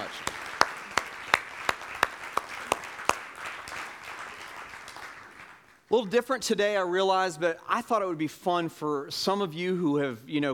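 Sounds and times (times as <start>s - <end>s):
sharp evenly spaced claps: 0.0s - 5.8s
speech: 5.9s - 10.5s.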